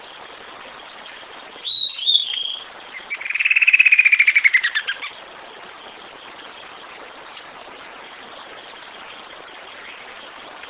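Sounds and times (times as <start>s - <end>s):
faint hiss: 0.0s - 10.6s
bird whistling and trilling: 1.6s - 5.1s.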